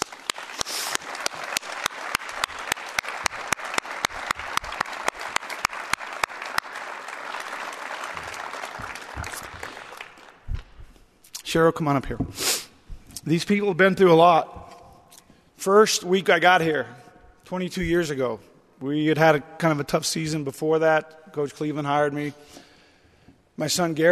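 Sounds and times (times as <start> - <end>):
audience applause: 0.0 - 10.4
speech: 11.5 - 12.5, 13.2 - 14.7, 15.6 - 22.6, 23.6 - 24.0.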